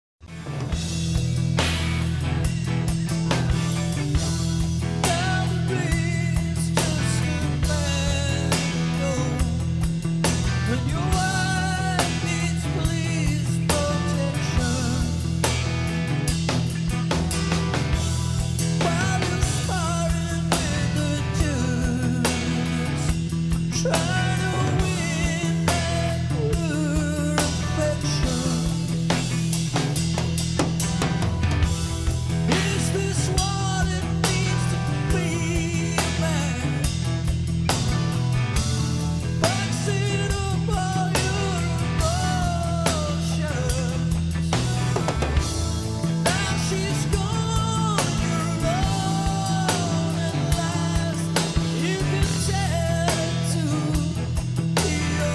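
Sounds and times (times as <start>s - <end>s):
heavy groove music: 0.2s - 55.3s.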